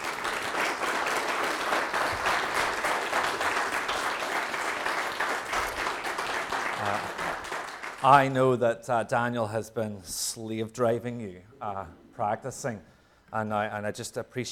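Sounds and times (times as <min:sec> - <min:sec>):
round of applause: 0:00.0 - 0:08.4
speech: 0:08.0 - 0:14.5.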